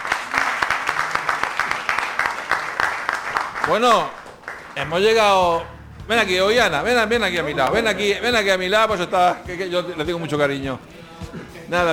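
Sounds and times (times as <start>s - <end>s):
audience applause: 0.0s - 5.6s
speech: 3.7s - 4.2s, 4.8s - 11.9s.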